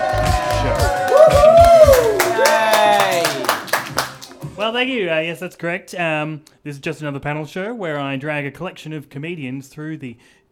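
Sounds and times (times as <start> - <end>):
audience whooping and cheering: 0.0 - 4.2
audience clapping: 0.0 - 4.8
speech: 4.7 - 10.5.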